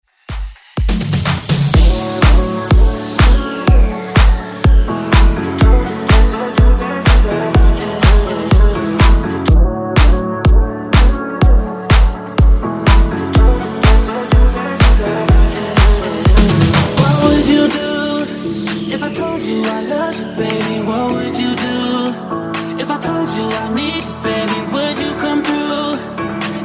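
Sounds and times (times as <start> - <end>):
dance music: 0.1 - 26.6.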